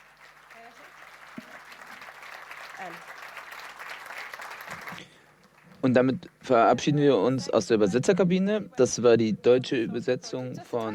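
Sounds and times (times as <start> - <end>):
audience applause: 0.0 - 5.9
speech: 2.8 - 3.2, 5.8 - 10.9.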